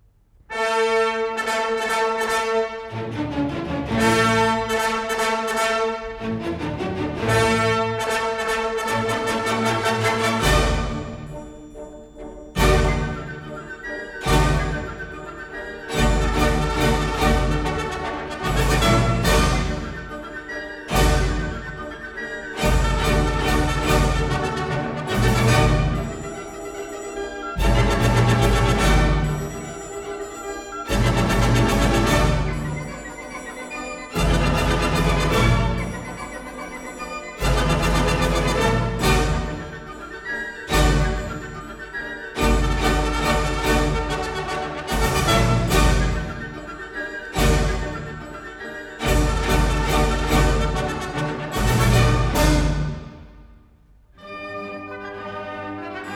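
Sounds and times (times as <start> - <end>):
ballet march music: 0.5 - 56.1.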